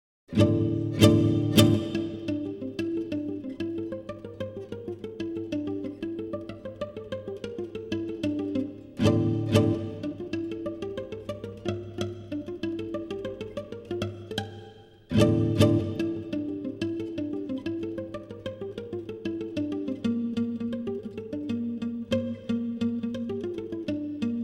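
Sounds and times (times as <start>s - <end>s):
guitar: 0.3s - 24.4s.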